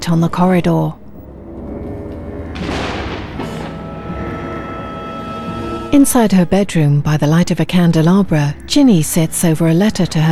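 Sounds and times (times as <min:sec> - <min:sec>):
speech: 0:00.0 - 0:01.0, 0:05.9 - 0:10.3
thunder rumbling and cracking: 0:00.0 - 0:06.5.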